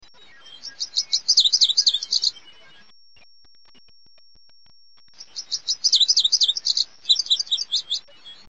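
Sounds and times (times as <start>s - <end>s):
Lazuli Bunting calling: 0.6s - 2.4s, 5.2s - 8.1s.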